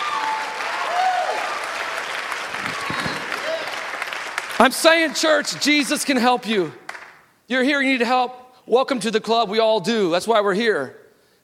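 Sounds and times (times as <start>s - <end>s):
voices calling out and whooping in praise: 0.0s - 4.2s
church congregation applauding during a morning service: 0.0s - 7.3s
speech: 4.6s - 6.8s, 7.5s - 11.4s.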